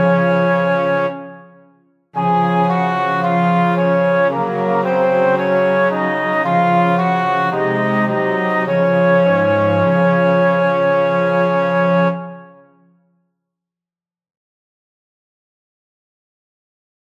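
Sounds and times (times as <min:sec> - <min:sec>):
three-part instrumental music in D flat major: 0:00.0 - 0:12.6.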